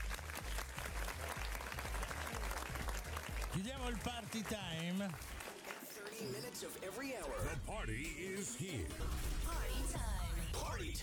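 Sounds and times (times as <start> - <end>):
applause: 0.0 - 7.2
speech: 3.6 - 5.4, 6.0 - 11.0.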